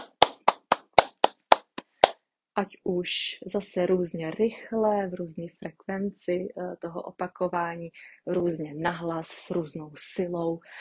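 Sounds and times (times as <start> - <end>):
hand clapping: 0.0 - 2.2
speech: 2.6 - 10.7.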